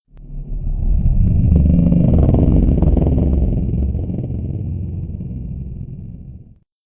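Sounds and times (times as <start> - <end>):
Cthulhu breathing: 0.7 - 5.9.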